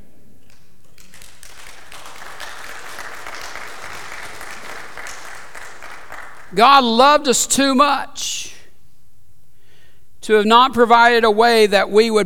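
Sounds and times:
church audience applause: 0:00.8 - 0:06.6
speech: 0:06.5 - 0:08.5, 0:10.3 - 0:12.2.

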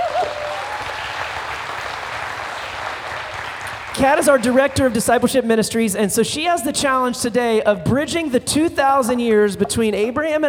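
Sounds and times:
round of applause: 0:00.0 - 0:05.1
speech: 0:04.0 - 0:10.4.

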